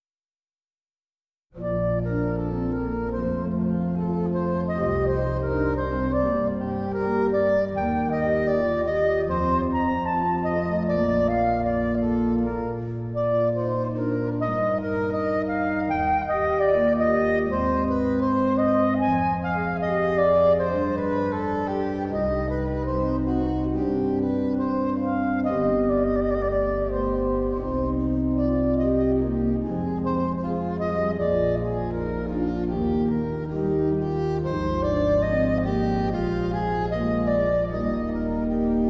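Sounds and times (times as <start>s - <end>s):
midi sonata in C major: 1.6s - 38.8s.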